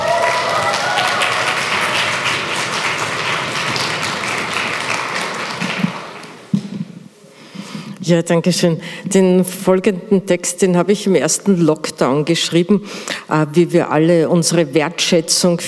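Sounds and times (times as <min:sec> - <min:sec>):
audience applause welcoming a guest onto a stage: 0:00.0 - 0:06.5
speech: 0:08.1 - 0:15.6.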